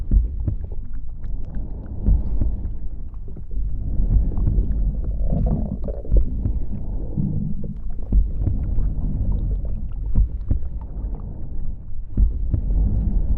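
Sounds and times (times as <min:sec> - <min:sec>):
dense low rumble: 0:00.0 - 0:13.3
heartbeat: 0:00.0 - 0:13.3
stomach gurgling: 0:00.8 - 0:11.2
muffled breathing: 0:02.2 - 0:10.1.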